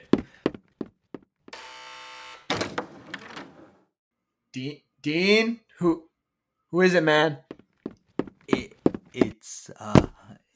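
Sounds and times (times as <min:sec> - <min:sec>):
electric door buzzer: 0:01.5 - 0:03.0
door clattering open: 0:02.5 - 0:03.8
speech: 0:04.6 - 0:06.1, 0:06.7 - 0:07.5, 0:09.2 - 0:10.1.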